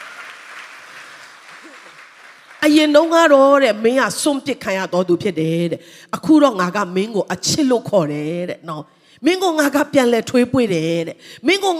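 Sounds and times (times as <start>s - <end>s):
congregation clapping in praise during a Christian worship service: 0.0s - 3.4s
speech: 2.6s - 11.7s.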